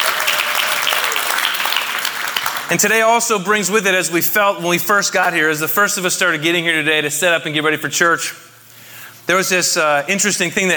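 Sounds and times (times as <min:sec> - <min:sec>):
crowd applause: 0:00.0 - 0:02.8
speech: 0:02.7 - 0:08.5, 0:09.3 - 0:10.7.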